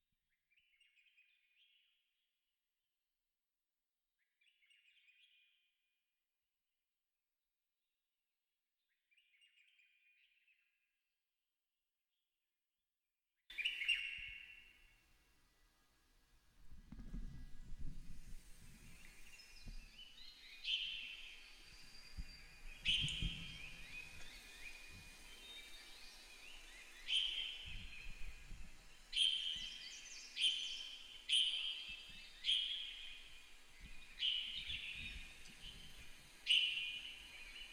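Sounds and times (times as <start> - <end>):
bird chirping: 13.5 - 15.0, 18.3 - 37.7.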